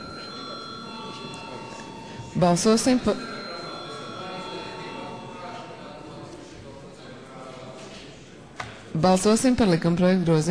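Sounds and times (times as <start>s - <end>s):
parliament voting bell ringing: 0.0s - 6.0s
murmur of chatter: 0.0s - 10.4s
speech: 2.4s - 3.3s, 9.0s - 10.4s.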